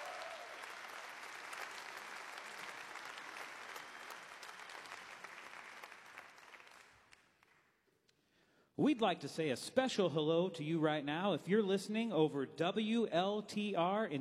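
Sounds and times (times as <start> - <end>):
audience applause: 0.0 - 7.3
speech: 8.8 - 14.2.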